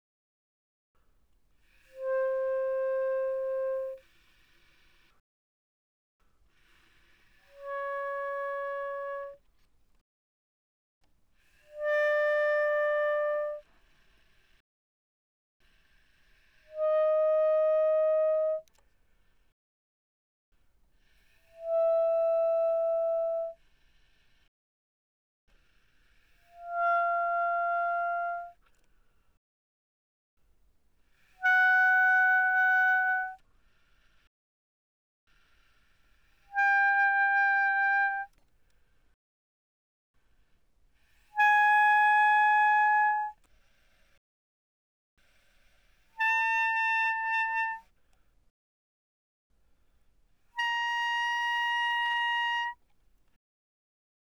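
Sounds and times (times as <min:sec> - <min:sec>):
bass clarinet playing pianissimo from C5 to B flat 5: 0:02.0 - 0:04.1, 0:07.5 - 0:09.5, 0:11.7 - 0:13.6, 0:16.7 - 0:18.7, 0:21.5 - 0:23.6, 0:26.5 - 0:28.6, 0:31.4 - 0:33.4, 0:36.5 - 0:38.4, 0:41.3 - 0:43.4, 0:46.2 - 0:47.9, 0:50.5 - 0:52.8.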